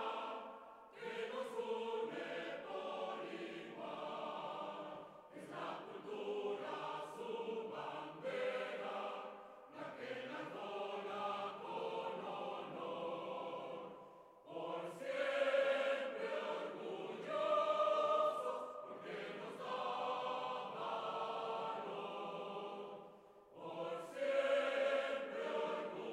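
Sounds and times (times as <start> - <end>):
hymn: 0.0 - 26.1.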